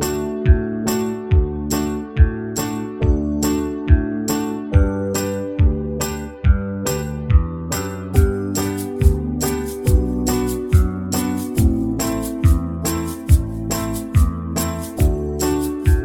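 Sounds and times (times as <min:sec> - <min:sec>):
banjo backing track in the key of G: 0:00.0 - 0:16.0.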